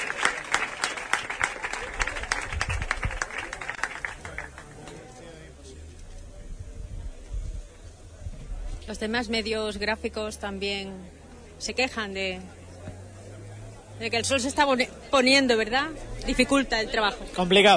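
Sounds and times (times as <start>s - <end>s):
applause: 0.0s - 5.2s
speech: 8.9s - 12.6s, 14.0s - 17.7s.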